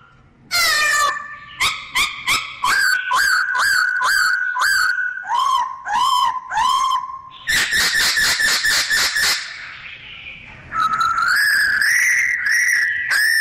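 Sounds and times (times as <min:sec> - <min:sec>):
bird singing: 0:00.0 - 0:13.3.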